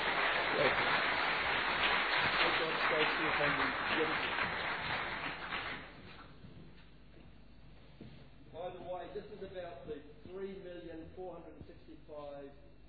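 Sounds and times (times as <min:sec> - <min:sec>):
audience applause welcoming a guest speaker to the stage: 0:00.0 - 0:06.4
speech: 0:03.2 - 0:04.6, 0:09.4 - 0:12.7.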